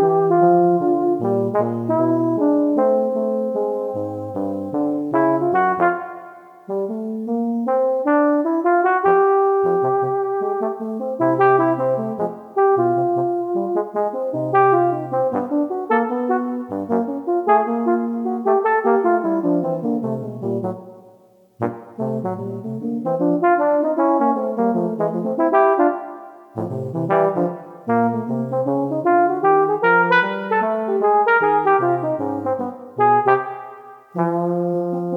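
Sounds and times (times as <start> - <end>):
two trombones playing a jazz duet: 0.0 - 20.8, 21.6 - 35.1.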